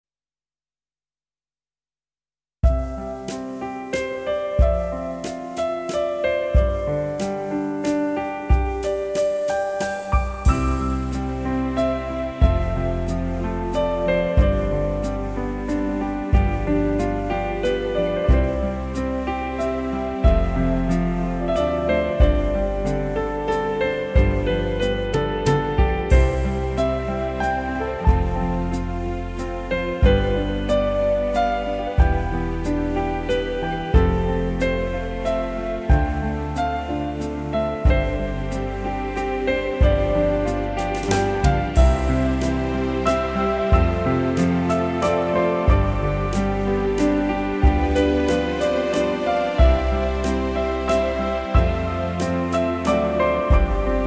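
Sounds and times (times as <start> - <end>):
waltz music: 2.9 - 54.0.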